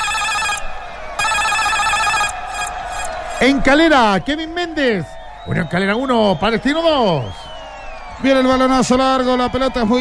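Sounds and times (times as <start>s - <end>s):
electric alarm bell ringing: 0.0s - 0.6s, 1.2s - 3.1s
speech: 3.4s - 7.5s, 8.2s - 9.9s.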